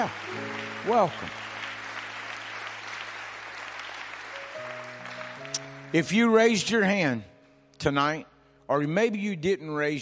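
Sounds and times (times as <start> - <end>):
speech: 0.0 - 1.4, 5.9 - 10.0
audience hand clapping applause: 0.0 - 6.9.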